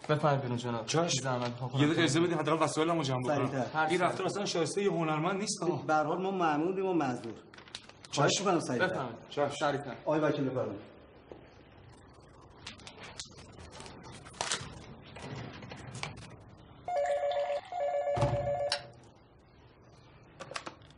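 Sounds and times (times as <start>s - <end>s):
speech: 0.1s - 7.6s, 8.2s - 10.9s
telephone ringing in electronic bursts: 16.9s - 19.0s.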